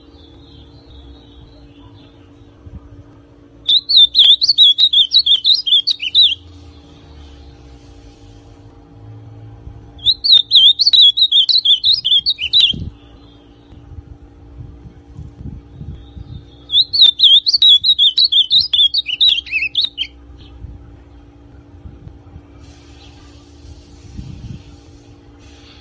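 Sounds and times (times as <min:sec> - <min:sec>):
ultramarine grosbeak song: 0:03.6 - 0:06.6, 0:10.0 - 0:13.8, 0:15.7 - 0:20.5.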